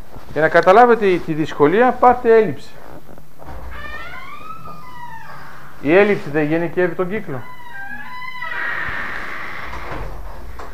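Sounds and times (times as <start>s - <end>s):
speech: 0.4s - 2.9s, 5.8s - 7.6s
squeaking door needing oil: 3.0s - 10.7s.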